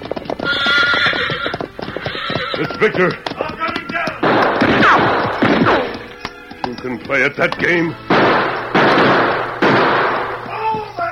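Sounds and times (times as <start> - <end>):
horse whinnying shrilly: 0.0 - 6.2
galloping horse hoofbeats: 0.0 - 11.1
speech: 2.6 - 3.4, 6.8 - 8.4.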